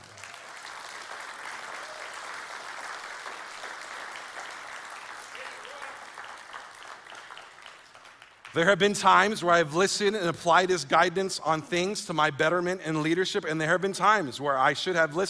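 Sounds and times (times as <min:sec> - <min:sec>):
audience applauding: 0:00.0 - 0:08.6
speech: 0:08.5 - 0:15.2.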